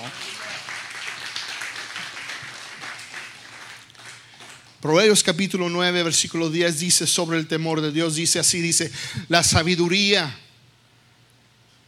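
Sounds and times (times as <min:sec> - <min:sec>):
audience applause: 0:00.0 - 0:04.8
speech: 0:04.8 - 0:10.5.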